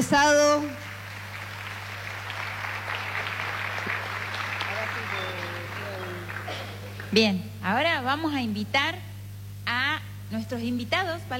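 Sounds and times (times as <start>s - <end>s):
speech: 0.1s - 0.9s, 7.1s - 9.1s, 9.7s - 11.3s
audience applause: 0.6s - 7.2s.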